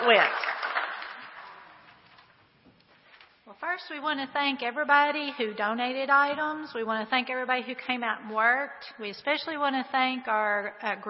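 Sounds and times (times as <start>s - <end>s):
speech: 0.0s - 0.6s, 3.8s - 11.0s
applause: 0.0s - 1.8s.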